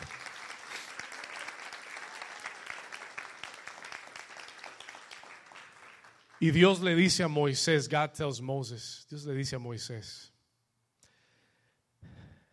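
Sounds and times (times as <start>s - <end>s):
audience applause: 0.0s - 7.0s
speech: 6.4s - 10.3s.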